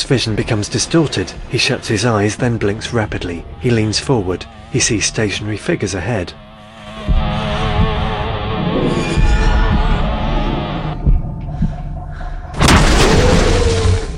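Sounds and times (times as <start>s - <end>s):
speech: 0.0s - 6.5s
low throbbing drone: 0.0s - 14.1s
gunshots blasting the plaster heads off jockey figures on a sun deck: 12.6s - 14.1s.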